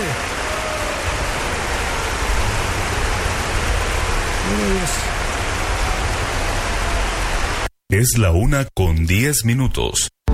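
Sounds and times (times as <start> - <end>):
audience applauding: 0.0 - 7.7
speech: 4.6 - 5.2, 7.9 - 10.2.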